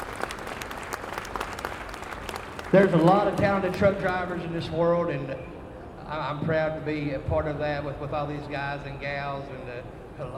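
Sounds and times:
audience applause: 0:00.0 - 0:04.2
speech: 0:02.7 - 0:10.3.

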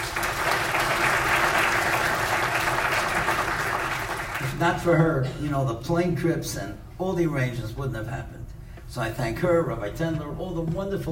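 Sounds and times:
audience applause: 0:00.0 - 0:04.5
speech: 0:04.6 - 0:11.1.

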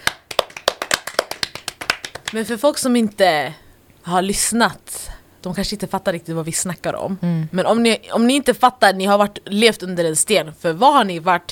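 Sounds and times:
hand clapping: 0:00.0 - 0:02.5
speech: 0:02.3 - 0:11.5.

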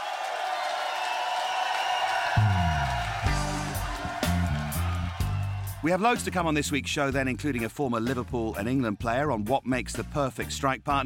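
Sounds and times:
round of applause: 0:00.0 - 0:06.0
speech: 0:05.8 - 0:11.0.

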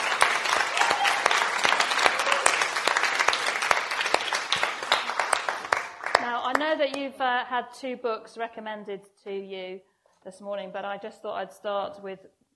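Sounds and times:
audience applause: 0:00.0 - 0:06.6
speech: 0:06.7 - 0:12.4.

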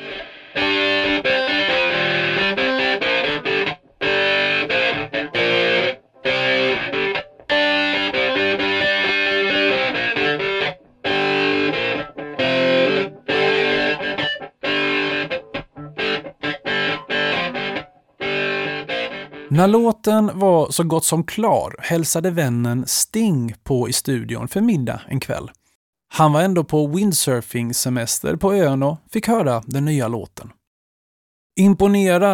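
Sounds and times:
isolated distorted electric guitar riff: 0:00.0 - 0:19.5
speech: 0:19.6 - 0:30.6, 0:31.6 - 0:32.3.

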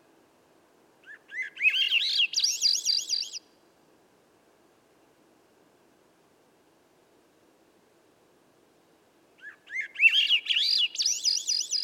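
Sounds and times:
Swainson's thrush song phrase: 0:01.0 - 0:03.5, 0:09.4 - 0:11.8.

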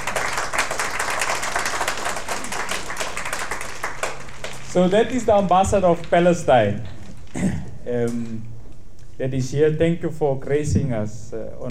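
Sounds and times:
crowd applauding: 0:00.0 - 0:06.5
speech: 0:04.7 - 0:08.5, 0:09.2 - 0:11.6.

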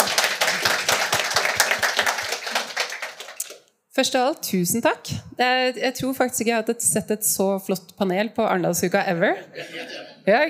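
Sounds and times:
audience clapping for panel: 0:00.0 - 0:03.7
speech: 0:04.0 - 0:10.4
laughter: 0:09.4 - 0:10.4.

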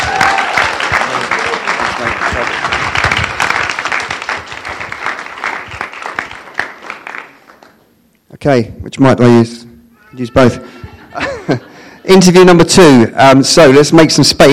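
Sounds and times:
audience applause: 0:00.0 - 0:07.9
speech: 0:08.4 - 0:14.5
laughter: 0:10.5 - 0:12.6.

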